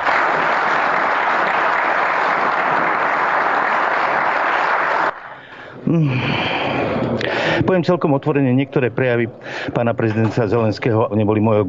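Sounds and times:
parliament applause: 0.0 - 5.4
speech: 5.9 - 6.5, 7.6 - 11.6.

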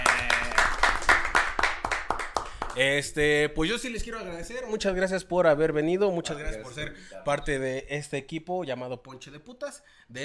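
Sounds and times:
audience applause: 0.0 - 2.8
speech: 2.8 - 10.2.

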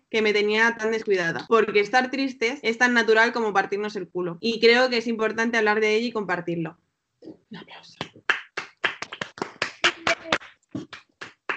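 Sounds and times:
speech: 0.1 - 8.3
applause: 8.0 - 11.5.

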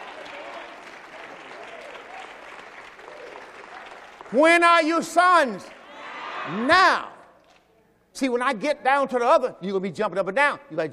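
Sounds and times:
audience applauding: 0.0 - 5.9
speech: 4.3 - 5.8, 6.4 - 7.1, 8.2 - 10.9.

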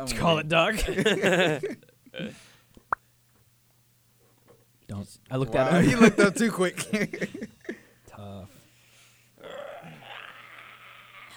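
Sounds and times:
speech: 0.0 - 2.4, 4.9 - 7.6
burp: 9.4 - 11.3.

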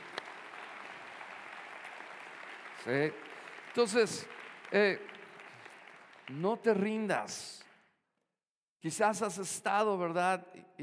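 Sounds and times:
audience applause: 0.0 - 7.3
speech: 2.8 - 5.1, 6.3 - 7.6, 8.8 - 10.8.

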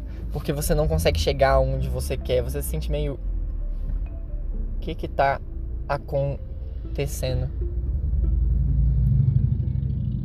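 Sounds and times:
speech: 0.4 - 3.3, 4.8 - 7.7
Harley-Davidson motorcycle engine roaring past: 7.8 - 10.2.

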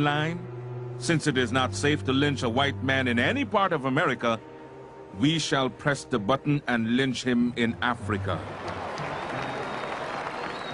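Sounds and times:
speech: 0.0 - 4.5, 5.1 - 8.7
crowd applause: 8.4 - 10.7
thin high whistle-like tone: 9.4 - 10.7.

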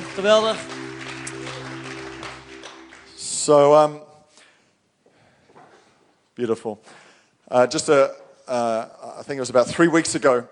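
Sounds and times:
audience applause for the band: 0.0 - 3.7
speech: 0.2 - 0.9, 3.4 - 4.1, 6.4 - 10.5.

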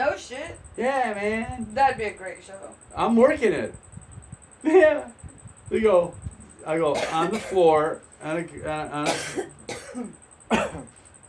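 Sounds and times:
faint steady high-pitched whine: 0.0 - 11.2
speech: 0.2 - 3.8, 4.6 - 11.0
sharp raspy coughs: 6.9 - 7.7, 9.0 - 10.9.

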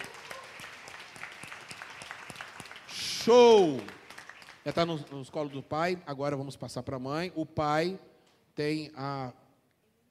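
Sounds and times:
audience applause: 0.0 - 5.1
speech: 3.2 - 4.0, 4.6 - 9.4.

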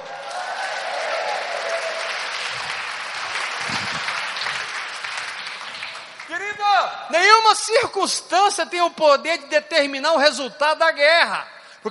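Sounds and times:
audience applauding: 0.0 - 6.6
speech: 7.1 - 11.8.

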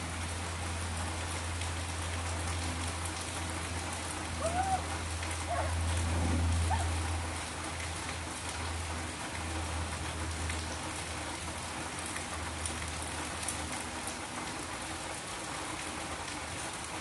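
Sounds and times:
low steady hum: 0.0 - 11.4
heavy rain: 0.0 - 16.9.

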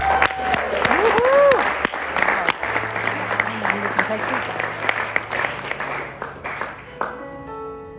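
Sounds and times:
audience whistles and cheers: 0.0 - 1.9
audience hand clapping: 0.0 - 7.4.

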